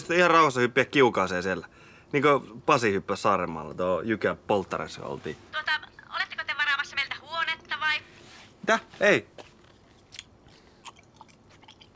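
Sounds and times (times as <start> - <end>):
faint hiss: 0.0 - 11.9
speech: 0.1 - 5.8, 8.7 - 9.4
gum chewing: 9.6 - 11.9.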